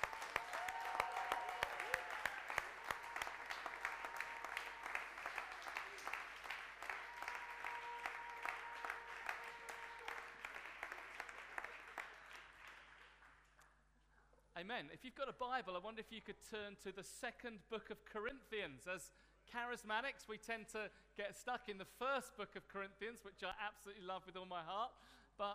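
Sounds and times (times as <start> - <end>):
audience applause: 0.0 - 13.5
speech: 14.6 - 25.5.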